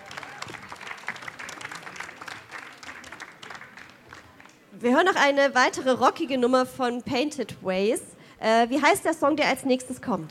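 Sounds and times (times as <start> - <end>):
audience applause: 0.0 - 4.7
speech: 4.8 - 10.2.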